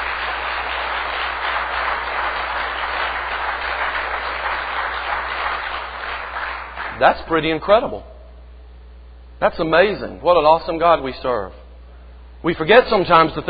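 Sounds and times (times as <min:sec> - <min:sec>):
audience applauding: 0:00.0 - 0:07.0
speech: 0:07.0 - 0:08.1, 0:09.4 - 0:11.6, 0:12.4 - 0:13.4.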